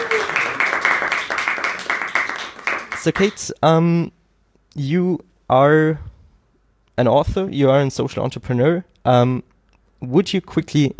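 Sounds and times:
audience clapping for a show's guest: 0.0s - 3.5s
speech: 3.0s - 6.1s, 7.0s - 10.9s.

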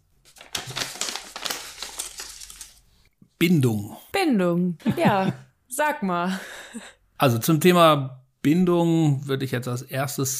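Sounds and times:
paper rustling as card drawn from envelope: 0.1s - 3.1s
speech: 3.4s - 10.3s
laughter: 4.8s - 5.5s.

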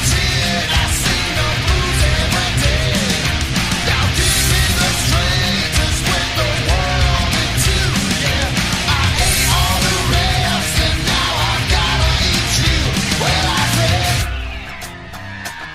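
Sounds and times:
rock song from an album: 0.0s - 15.7s.

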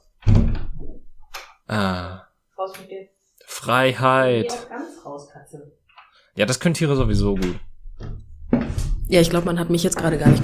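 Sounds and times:
door opening to let cat out: 0.2s - 1.5s, 7.0s - 10.4s
speech: 1.7s - 5.8s, 6.4s - 8.2s, 9.1s - 10.4s.

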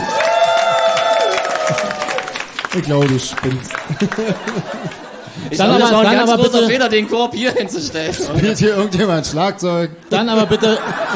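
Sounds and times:
canned applause effect triggered from a button: 0.0s - 5.6s
laughter: 1.4s - 11.1s
speech: 2.7s - 11.1s.

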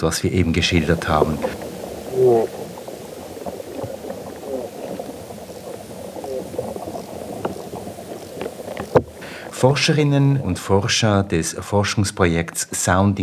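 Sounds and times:
speech: 0.0s - 1.6s, 2.2s - 2.6s, 9.6s - 13.2s
gurgling burst: 0.0s - 11.0s
low murmur: 0.0s - 11.1s
soil creatures feeding, smacking and crackling underground: 0.0s - 11.1s.

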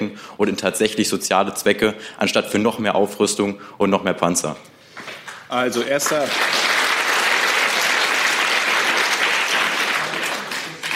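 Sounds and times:
speech: 0.4s - 4.7s, 5.5s - 6.7s
audience applause: 5.8s - 10.9s.

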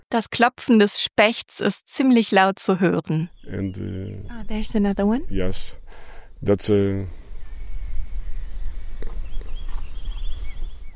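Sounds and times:
speech: 0.1s - 7.2s
blue rock thrush singing: 3.3s - 10.9s.

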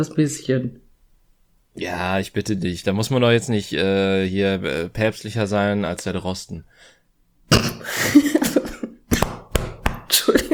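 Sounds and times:
speech: 0.0s - 0.8s, 1.8s - 8.3s
person coughing after choking on a drink: 7.5s - 9.4s, 10.0s - 10.5s.

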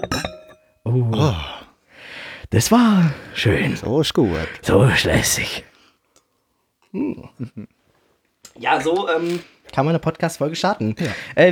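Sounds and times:
speech: 0.0s - 0.3s, 0.9s - 1.5s, 2.5s - 5.7s, 6.9s - 7.8s, 8.6s - 11.5s
wine glasses clinking in a toast: 0.0s - 0.9s.

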